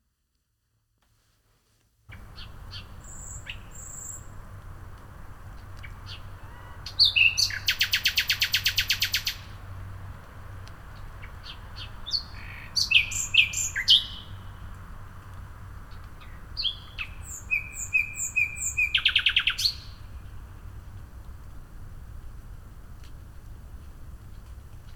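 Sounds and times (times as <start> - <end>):
nightingale song: 2.1 - 4.7, 5.6 - 9.7, 10.9 - 14.7, 15.9 - 20.5.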